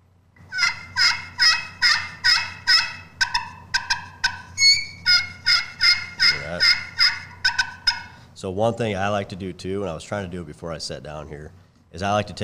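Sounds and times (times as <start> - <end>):
turkey friction call scratched with a hickory striker, raspy yelps: 0.4 - 8.3
speech: 8.4 - 12.4.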